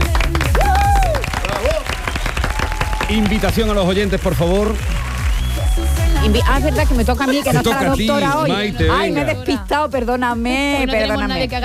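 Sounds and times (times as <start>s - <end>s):
studio audience applause: 0.0s - 8.3s
speech: 3.1s - 5.0s, 5.8s - 11.6s.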